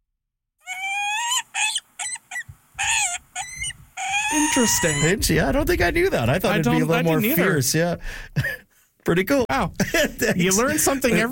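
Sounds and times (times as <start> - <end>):
peregrine falcon calling: 0.7 - 5.3
speech: 4.3 - 11.3.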